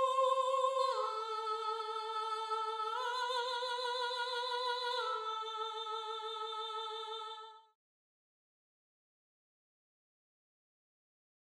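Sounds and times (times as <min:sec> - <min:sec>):
soprano singing: 0:00.0 - 0:07.8.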